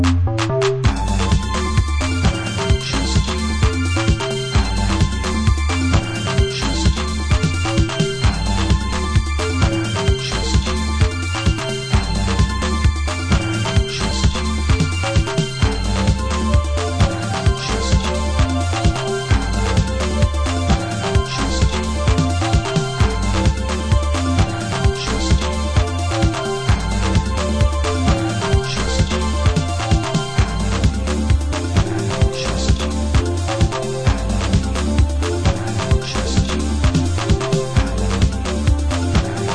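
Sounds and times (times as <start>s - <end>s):
electronic organ remix: 0.0s - 39.5s.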